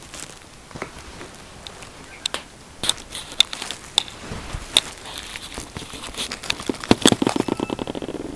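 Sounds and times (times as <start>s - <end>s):
uguisu: 1.7s - 8.3s.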